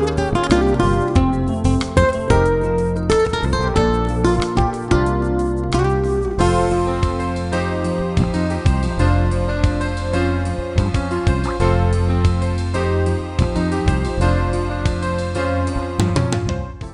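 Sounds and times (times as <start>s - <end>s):
pop jazz guitar music: 0.0s - 16.9s.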